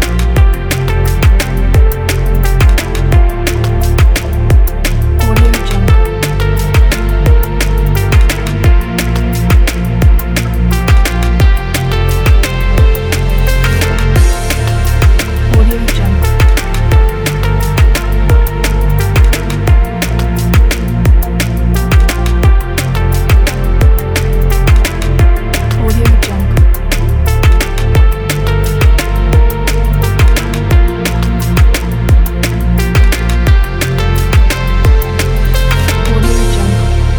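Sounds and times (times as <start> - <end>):
powerful action drum and bass music: 0.0 - 37.1.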